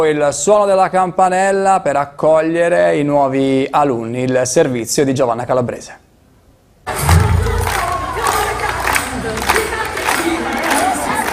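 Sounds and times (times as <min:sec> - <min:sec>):
speech: 0:00.0 - 0:06.0
clapping: 0:07.1 - 0:11.3
children cheering and shouting at school: 0:07.4 - 0:09.0, 0:09.8 - 0:11.3.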